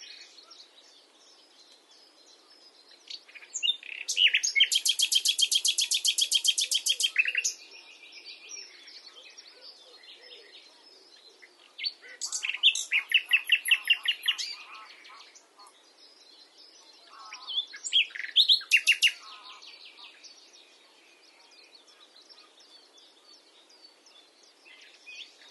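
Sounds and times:
common nightingale Luscinia megarhynchos song with twitters and loud rattle: 0.0 - 25.4.

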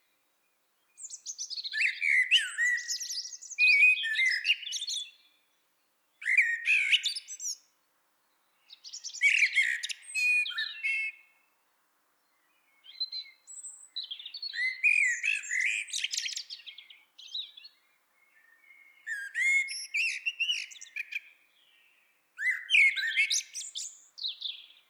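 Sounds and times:
Eurasian blackbird song: 0.0 - 24.8.

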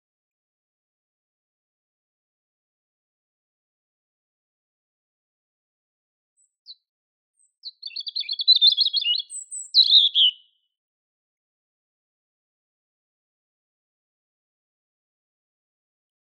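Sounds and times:
European robin Erithacus rubecula singing: 7.4 - 10.6.

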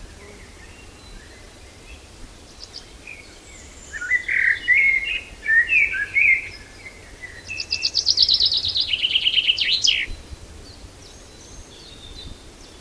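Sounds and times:
common chaffinch song: 0.0 - 12.7.

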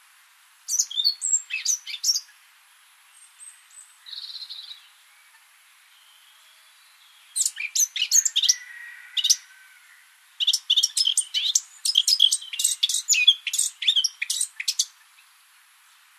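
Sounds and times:
Eurasian blackcap Sylvia atricapilla twittering: 0.7 - 2.3, 7.3 - 8.6, 10.4 - 14.9.

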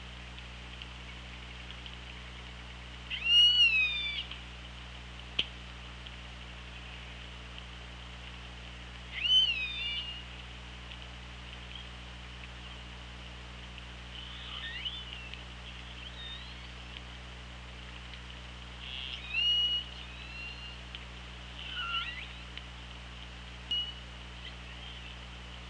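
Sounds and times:
orca clicks and pulsed calls: 3.1 - 4.4, 9.0 - 12.5, 13.7 - 17.1, 18.0 - 23.0.

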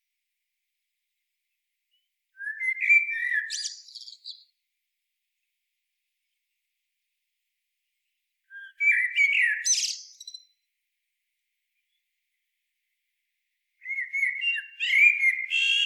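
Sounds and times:
Eurasian blackbird singing: 1.9 - 4.5, 8.5 - 10.5, 13.8 - 15.8.

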